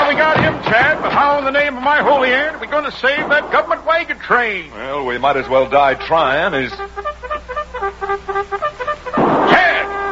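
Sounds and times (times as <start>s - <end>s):
speech: 0.6s - 7.0s
cavalry bugle call: 5.4s - 10.0s.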